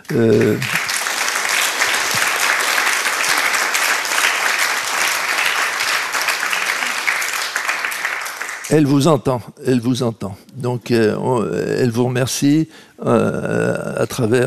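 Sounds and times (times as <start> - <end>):
audience applauding: 0.0 - 8.8
speech: 0.1 - 0.8, 8.7 - 14.4.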